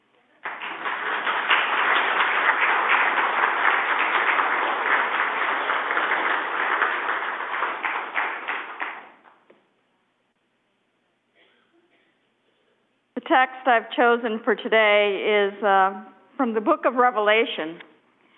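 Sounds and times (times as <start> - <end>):
crowd applause: 0.4 - 9.2
speech: 13.3 - 17.9.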